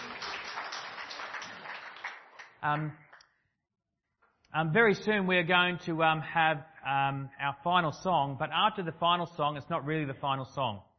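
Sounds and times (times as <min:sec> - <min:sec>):
crowd applause: 0:00.0 - 0:02.6
speech: 0:02.6 - 0:03.1, 0:04.5 - 0:10.9.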